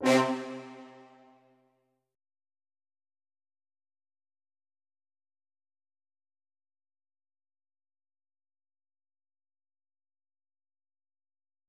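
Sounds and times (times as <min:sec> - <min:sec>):
brass instruments: 0:00.0 - 0:01.3.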